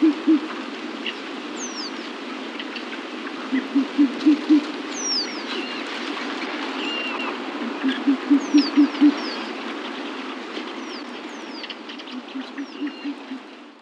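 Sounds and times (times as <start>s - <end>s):
short-eared owl hooting: 0.0s - 0.5s, 3.5s - 4.7s, 7.6s - 9.3s, 12.2s - 13.4s.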